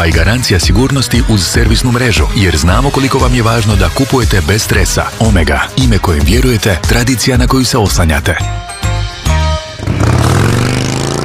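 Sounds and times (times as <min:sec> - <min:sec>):
speech: 0:00.0 - 0:08.7
motorcycle engines roaring: 0:09.6 - 0:11.2.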